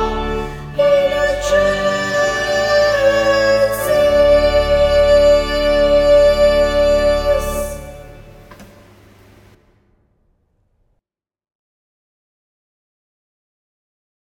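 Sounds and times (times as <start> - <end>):
sopranos and tenors singing a Sanctus: 0.0 - 9.5.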